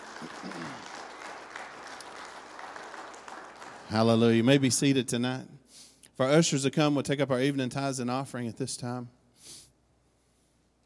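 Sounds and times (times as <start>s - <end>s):
audience clapping hands in praise: 0.0s - 4.8s
speech: 3.9s - 5.6s, 6.2s - 9.6s.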